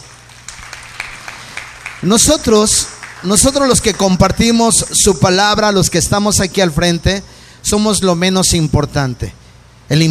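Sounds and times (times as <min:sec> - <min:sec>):
crowd clapping in a steady rhythmic beat: 0:00.0 - 0:05.0
speech: 0:02.0 - 0:10.0.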